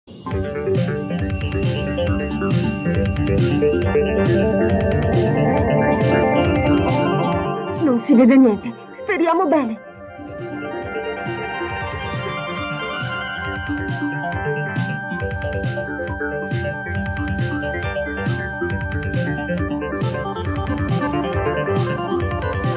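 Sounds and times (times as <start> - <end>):
music beat: 0.1 - 22.7.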